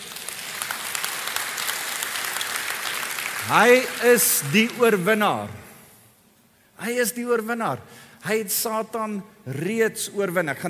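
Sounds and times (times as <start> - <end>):
crowd audience clapping hands: 0.0 - 5.3
speech: 3.4 - 5.6, 6.8 - 10.6.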